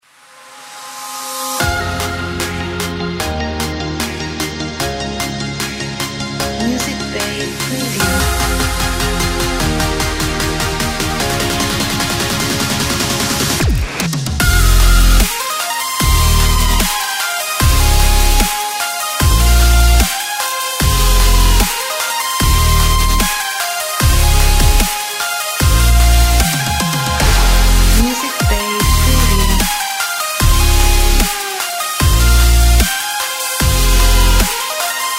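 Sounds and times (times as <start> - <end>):
future dubstep music: 0.9 - 35.1.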